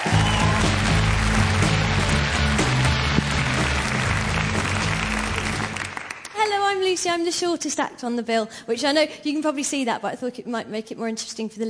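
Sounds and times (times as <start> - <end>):
audience applause welcoming a comedian at a stand-up show: 0.0 - 6.4
speech: 6.9 - 11.6.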